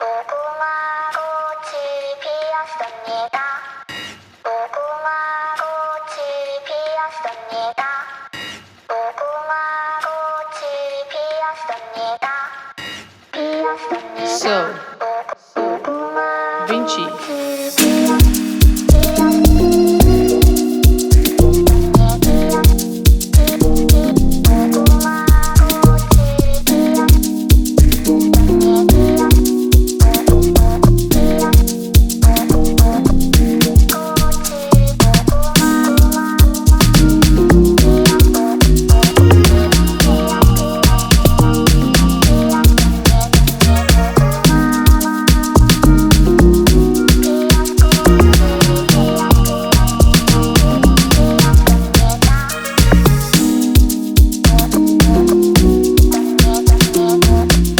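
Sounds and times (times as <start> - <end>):
amapiano remix music: 15.6 - 57.7.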